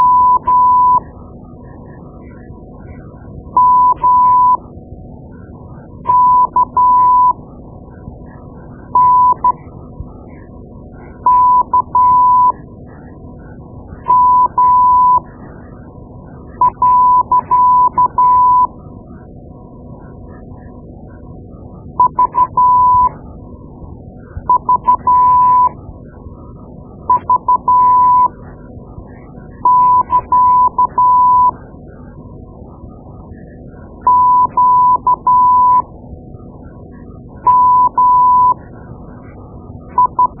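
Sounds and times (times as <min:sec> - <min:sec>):
morse code: 0:00.0 - 0:01.0, 0:03.6 - 0:04.6, 0:06.1 - 0:07.4, 0:09.0 - 0:09.6, 0:11.2 - 0:12.6, 0:14.1 - 0:15.2, 0:16.6 - 0:18.7, 0:22.0 - 0:23.1, 0:24.5 - 0:25.7, 0:27.1 - 0:28.3, 0:29.6 - 0:31.5, 0:34.1 - 0:35.8, 0:37.4 - 0:38.6, 0:40.0 - 0:40.3.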